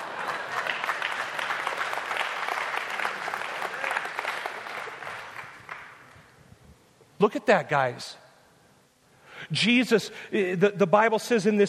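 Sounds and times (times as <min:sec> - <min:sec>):
audience clapping: 0:00.0 - 0:06.3
speech: 0:07.2 - 0:08.2, 0:09.5 - 0:11.6.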